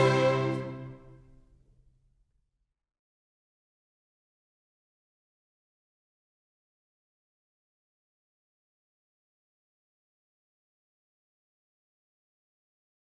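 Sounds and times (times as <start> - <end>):
ballet music: 0.0 - 1.2.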